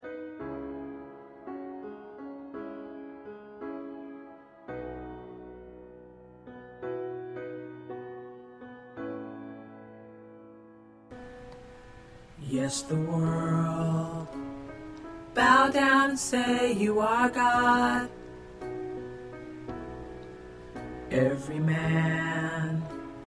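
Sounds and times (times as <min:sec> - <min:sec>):
tenor singing: 0:12.4 - 0:14.5, 0:15.3 - 0:18.2, 0:21.0 - 0:23.2.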